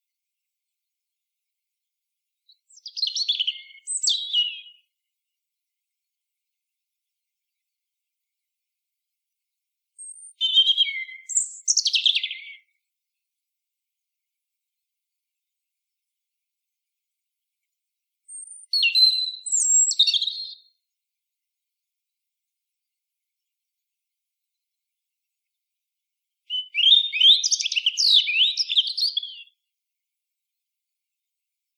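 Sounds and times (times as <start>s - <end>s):
European robin singing: 2.5s - 4.9s, 10.0s - 12.8s, 18.3s - 20.7s, 26.5s - 29.6s.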